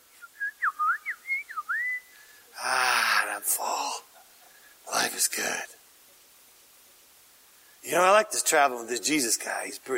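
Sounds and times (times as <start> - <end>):
bird singing a whistled phrase at sunset: 0.2 - 2.1
speech: 3.4 - 4.1, 5.2 - 5.8, 7.9 - 9.9.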